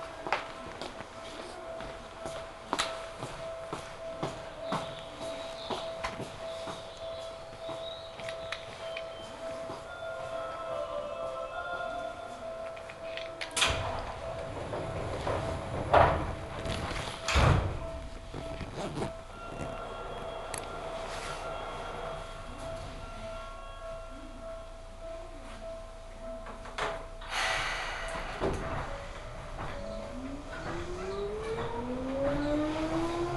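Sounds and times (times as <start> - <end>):
Seibu Ikebukuro Line local train rumbling hum: 0.0 - 33.3
rising train motor whine: 29.8 - 33.3.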